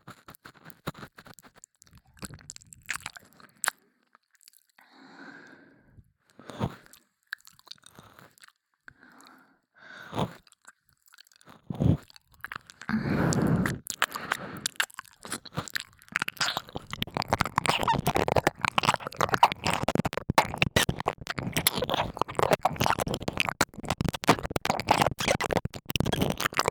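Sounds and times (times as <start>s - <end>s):
ASMR ear licking in the left channel: 11.9s - 26.7s.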